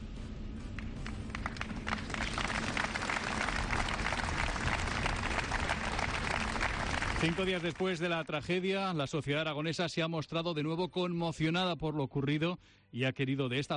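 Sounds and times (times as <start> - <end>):
applause after a minute of silence: 0.8 - 8.4
speech: 7.2 - 13.7.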